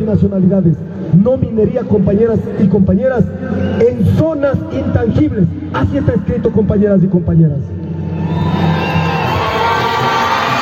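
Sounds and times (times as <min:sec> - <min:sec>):
speech: 0:00.0 - 0:09.0
large crowd applauding and cheering: 0:08.0 - 0:10.5.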